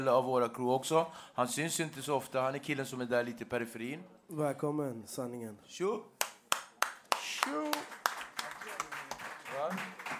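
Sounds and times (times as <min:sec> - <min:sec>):
speech: 0:00.0 - 0:06.1
applause: 0:06.2 - 0:10.1.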